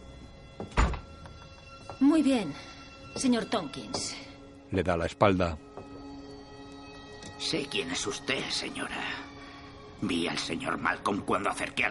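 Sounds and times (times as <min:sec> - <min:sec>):
door shutting: 0:00.6 - 0:01.4
speech: 0:02.0 - 0:05.7, 0:07.4 - 0:09.3, 0:10.0 - 0:11.8.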